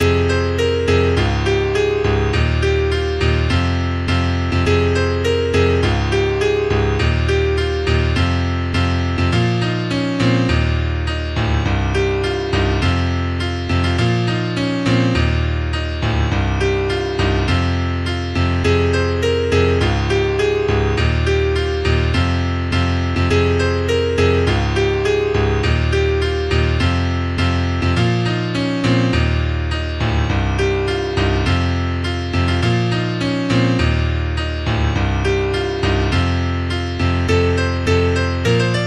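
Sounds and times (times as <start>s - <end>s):
piano: 0.0s - 38.8s.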